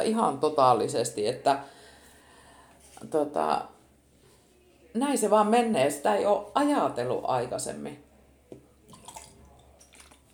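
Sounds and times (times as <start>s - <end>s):
speech: 0.0s - 1.8s, 3.0s - 3.8s, 5.0s - 8.0s
sip of water taken at a microphone: 8.9s - 10.3s.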